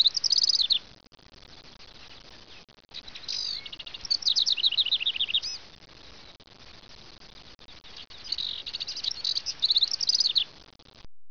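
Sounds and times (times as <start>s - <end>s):
squeaky birds in eastern Washington: 0.0s - 0.9s, 1.9s - 5.7s, 7.8s - 10.6s.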